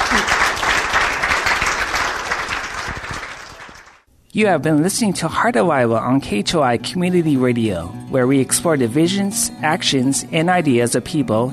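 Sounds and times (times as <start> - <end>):
audience applause for speaker: 0.0 - 4.0
speech: 4.4 - 11.5.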